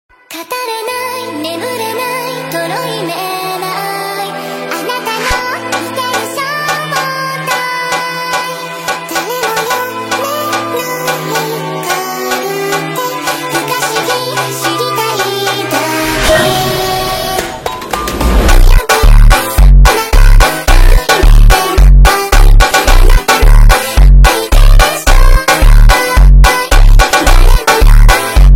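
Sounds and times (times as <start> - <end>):
slowed funk music: 9.1 - 28.5.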